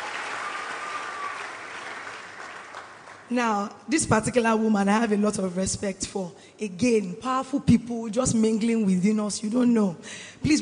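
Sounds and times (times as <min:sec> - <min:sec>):
audience applause welcoming a church minister in Nigeria: 0:00.0 - 0:03.3
speech: 0:03.3 - 0:10.6.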